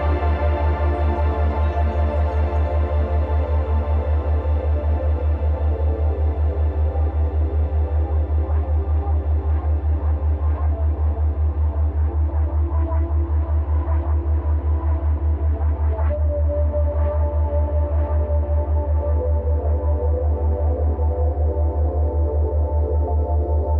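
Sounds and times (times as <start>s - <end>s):
full-spectrum binaural ambience of low hum and stacked tones: 0.0s - 23.7s.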